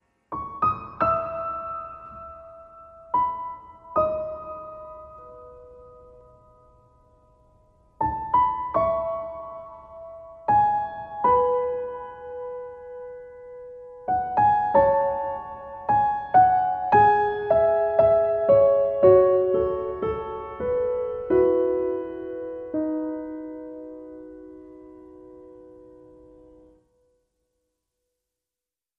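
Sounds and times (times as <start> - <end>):
solo piano: 0.0 - 27.4.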